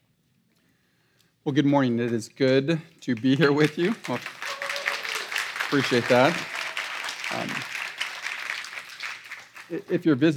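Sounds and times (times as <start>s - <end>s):
speech: 1.4s - 4.4s, 5.7s - 6.6s, 7.3s - 7.7s, 9.7s - 10.3s
audience applauding: 3.1s - 10.3s.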